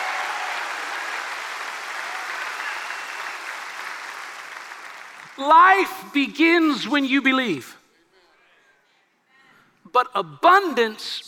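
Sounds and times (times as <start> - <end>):
audience clapping: 0.0 - 5.9
speech: 5.4 - 7.8, 10.0 - 11.2.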